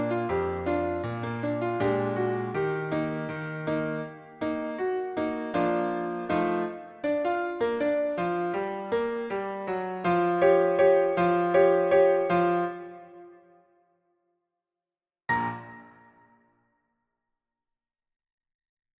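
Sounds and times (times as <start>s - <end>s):
piano piece: 0.0s - 13.7s, 15.3s - 16.4s.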